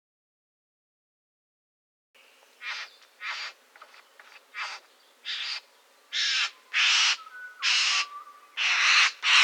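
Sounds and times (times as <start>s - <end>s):
satin bowerbird chattering: 2.6s - 9.4s.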